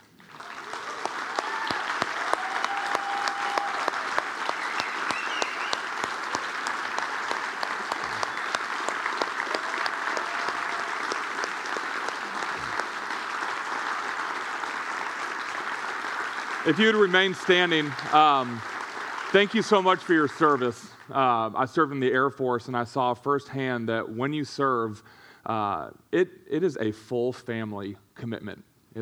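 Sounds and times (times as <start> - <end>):
audience applauding: 0.0 - 21.4
speech: 16.7 - 18.7, 19.3 - 29.0.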